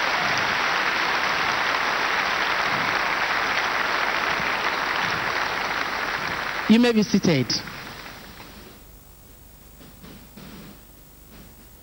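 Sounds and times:
audience clapping: 0:00.0 - 0:08.8
speech: 0:06.7 - 0:07.7.

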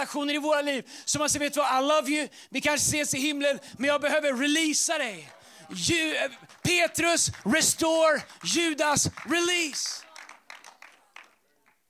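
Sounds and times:
speech: 0:00.0 - 0:10.1
hesitant scattered applause: 0:05.0 - 0:11.8.

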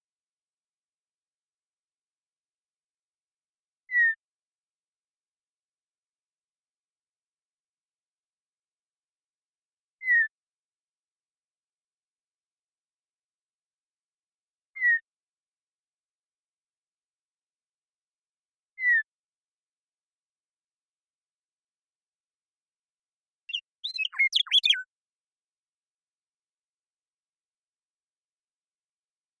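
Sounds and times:
Western meadowlark song and call: 0:14.8 - 0:15.1, 0:18.8 - 0:19.1, 0:23.5 - 0:24.9.

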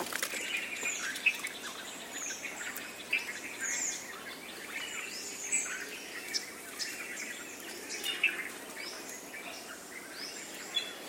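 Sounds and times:
birdsong chorus in India: 0:00.0 - 0:11.0
outdoor hiss: 0:00.0 - 0:11.0.

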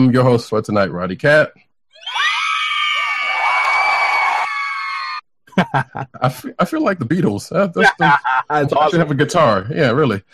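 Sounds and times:
speech: 0:00.0 - 0:01.6, 0:05.6 - 0:10.3
wrestling arena crowd cheering sound effect: 0:02.0 - 0:05.2
laughter: 0:05.5 - 0:10.2.

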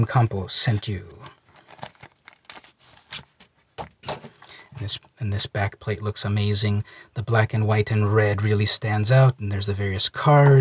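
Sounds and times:
speech: 0:00.0 - 0:01.4, 0:04.8 - 0:10.5
plastic bag crinkling as a comic book is pulled out: 0:01.1 - 0:03.4.

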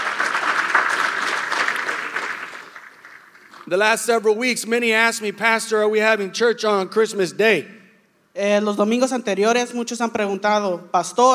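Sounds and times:
audience round of applause: 0:00.0 - 0:03.7
speech: 0:03.7 - 0:07.8, 0:08.4 - 0:11.3.

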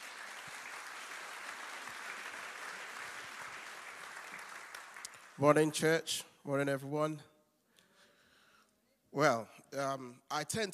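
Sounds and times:
church congregation applauding to welcome a speaker: 0:00.0 - 0:05.8
speech: 0:05.4 - 0:07.3, 0:09.2 - 0:10.7.

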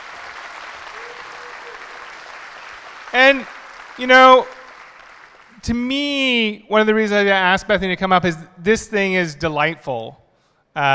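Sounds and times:
audience applause: 0:00.0 - 0:05.6
speech: 0:03.1 - 0:04.6, 0:05.6 - 0:10.2, 0:10.8 - 0:10.9.

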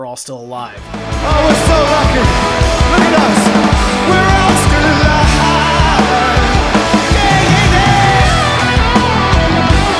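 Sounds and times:
speech: 0:00.0 - 0:04.3
concert crowd chanting hey: 0:01.0 - 0:09.8.

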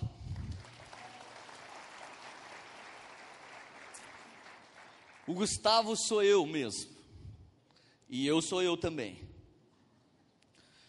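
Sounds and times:
audience applause: 0:00.4 - 0:05.5
speech: 0:05.3 - 0:06.9, 0:08.1 - 0:09.3.

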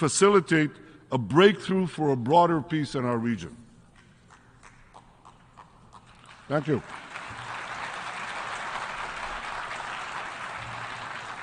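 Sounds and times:
speech: 0:00.0 - 0:03.6, 0:06.5 - 0:07.0
audience applause: 0:06.2 - 0:11.4.

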